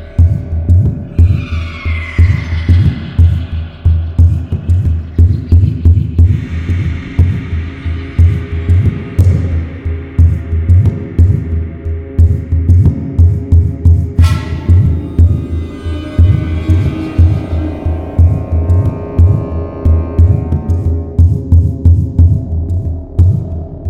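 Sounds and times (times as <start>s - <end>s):
ambient sound: 0.0s - 23.2s.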